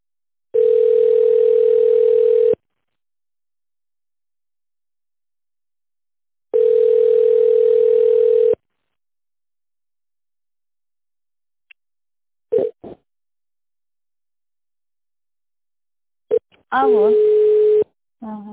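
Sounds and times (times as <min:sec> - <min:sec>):
telephone ringback tone: 0:00.6 - 0:02.6, 0:06.5 - 0:08.6, 0:16.9 - 0:17.8
speech: 0:16.7 - 0:17.3.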